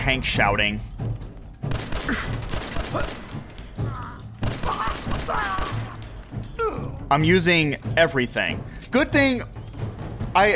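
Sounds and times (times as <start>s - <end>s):
speech: 0.0s - 1.1s, 1.7s - 3.2s, 5.3s - 5.7s, 7.1s - 9.5s, 10.4s - 10.5s
video game gunfire: 1.7s - 3.5s, 4.4s - 6.0s.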